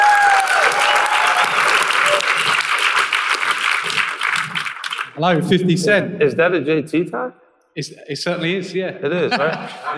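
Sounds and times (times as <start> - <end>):
faint whistles and cheers: 0.0 - 2.5
audience applause: 0.0 - 5.2
speech: 5.2 - 9.9
laughter: 8.9 - 9.9.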